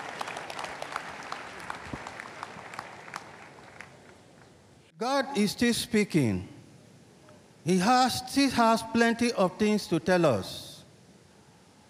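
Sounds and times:
audience clapping: 0.0 - 4.5
speech: 5.0 - 6.5, 7.6 - 10.6.

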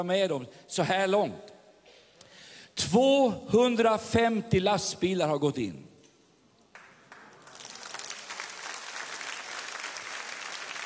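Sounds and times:
speech: 0.0 - 1.5, 2.8 - 5.9
audience applause: 6.7 - 10.8.

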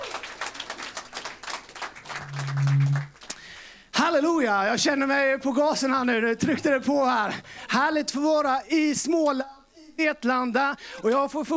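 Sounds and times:
audience applause: 0.0 - 3.3
low sustained tone: 2.1 - 3.1
speech: 4.1 - 9.4, 10.0 - 11.5.

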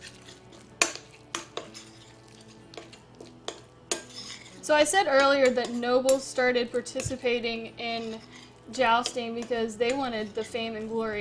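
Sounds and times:
utensil clinking and scraping against a bowl of tart filling: 0.0 - 11.1
speech: 4.7 - 11.1.

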